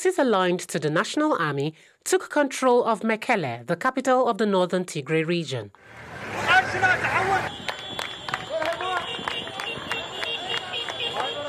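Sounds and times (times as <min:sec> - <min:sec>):
speech: 0:00.0 - 0:07.6
residents of Mekele, Ethiopia cheering: 0:05.8 - 0:11.4
residents of Mekele, Ethiopia clapping: 0:06.8 - 0:11.4.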